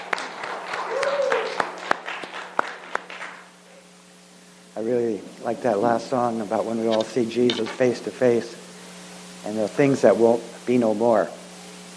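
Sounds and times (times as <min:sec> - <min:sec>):
audience applause: 0:00.0 - 0:03.4
speech: 0:04.8 - 0:08.6, 0:09.4 - 0:11.4.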